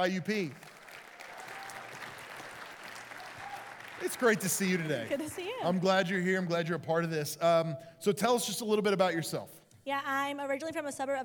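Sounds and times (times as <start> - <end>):
speech: 0.0 - 0.7, 4.0 - 11.2
church audience applauding a guest: 0.0 - 5.6.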